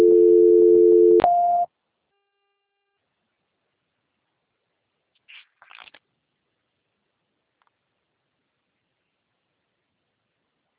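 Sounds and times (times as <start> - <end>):
telephone call transfer tone: 0.0 - 1.7.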